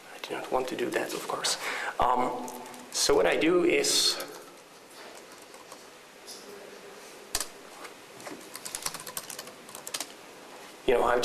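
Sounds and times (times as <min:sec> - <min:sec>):
speech: 0:00.3 - 0:04.3, 0:10.9 - 0:11.2
typing a commit message on a computer keyboard: 0:04.2 - 0:05.9, 0:07.4 - 0:07.6, 0:08.4 - 0:10.1.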